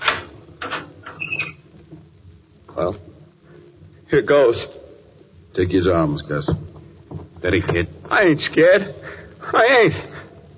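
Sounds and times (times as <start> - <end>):
cell door being unlocked with metallic clanks and rattles: 0.0 - 1.5
short high-pitched squeal of metal: 1.1 - 1.7
speech: 2.8 - 3.1, 4.1 - 4.8, 5.6 - 6.6, 7.4 - 10.1.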